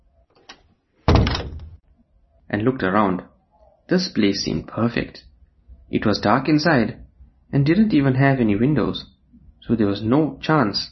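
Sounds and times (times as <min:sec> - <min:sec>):
garden shed door being pulled shut: 0:01.1 - 0:01.8
speech: 0:02.5 - 0:03.3, 0:03.9 - 0:05.3, 0:05.9 - 0:10.8.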